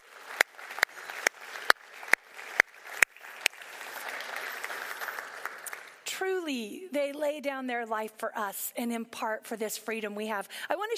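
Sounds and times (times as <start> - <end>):
audience applause: 0.0 - 6.0
speech: 6.4 - 10.9.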